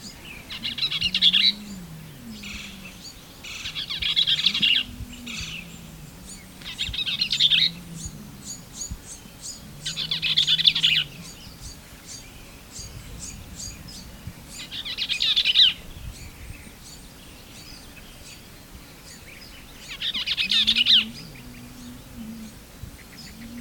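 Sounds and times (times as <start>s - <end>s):
Bell's vireo singing: 0.0s - 12.3s, 19.9s - 23.5s.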